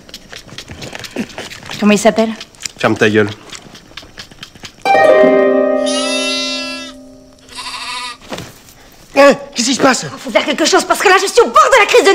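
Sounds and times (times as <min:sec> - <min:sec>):
speech: 0:01.2 - 0:03.4, 0:09.3 - 0:12.1
goat bleating: 0:05.9 - 0:08.2.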